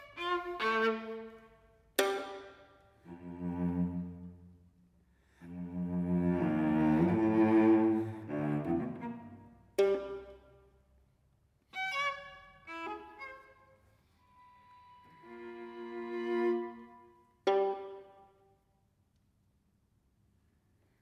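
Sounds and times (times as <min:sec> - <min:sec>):
string quartet: 0:00.0 - 0:04.5, 0:05.4 - 0:10.5, 0:11.8 - 0:18.3.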